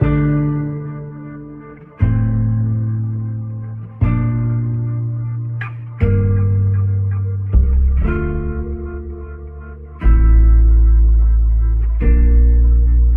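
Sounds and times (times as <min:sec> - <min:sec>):
guitar loops: 0:00.0 - 0:13.1.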